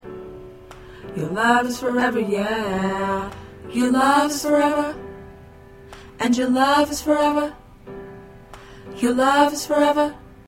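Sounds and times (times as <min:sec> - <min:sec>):
alto choir singing: 0:01.2 - 0:05.1, 0:06.2 - 0:07.6, 0:09.0 - 0:10.4.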